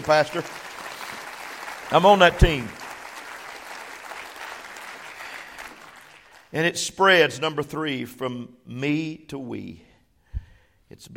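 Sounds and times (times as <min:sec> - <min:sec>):
speech: 0:00.0 - 0:00.7, 0:01.9 - 0:02.8, 0:06.5 - 0:09.9, 0:10.9 - 0:11.1
crowd clapping hands: 0:00.0 - 0:06.6.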